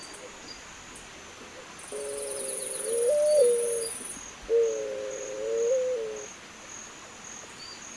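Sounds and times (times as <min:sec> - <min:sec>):
Zenaida dove giving low even coos: 0:01.9 - 0:03.9, 0:04.5 - 0:06.3.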